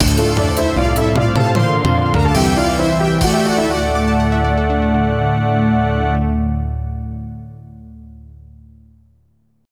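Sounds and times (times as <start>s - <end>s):
stage completed jingle: 0.0s - 6.6s.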